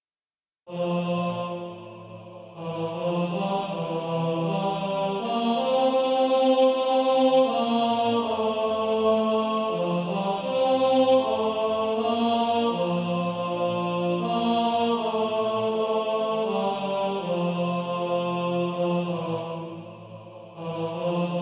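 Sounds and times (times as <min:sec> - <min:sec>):
three-part TBB male choir singing: 0:00.7 - 0:21.4.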